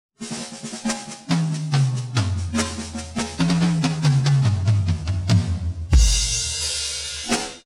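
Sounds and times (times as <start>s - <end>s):
drum solo: 0.2s - 7.6s.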